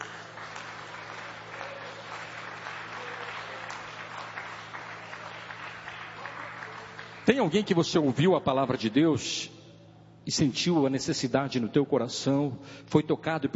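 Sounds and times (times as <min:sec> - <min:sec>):
audience clapping: 0:00.0 - 0:08.8
speech: 0:07.3 - 0:09.6, 0:10.3 - 0:13.5.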